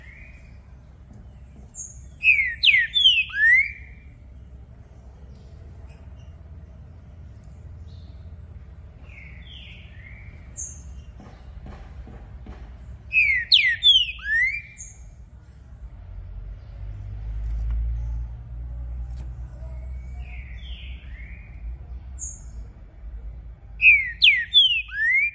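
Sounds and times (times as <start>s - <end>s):
green-winged saltator whistling: 1.8s - 4.0s, 13.1s - 15.0s, 23.8s - 25.3s.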